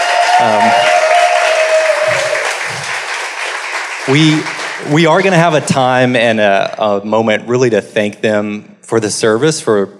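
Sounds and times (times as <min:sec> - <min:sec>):
faint voices and cheers: 0:00.0 - 0:02.9
steady round of applause from a crowd: 0:00.0 - 0:05.7
speech: 0:00.4 - 0:00.8, 0:04.1 - 0:09.9.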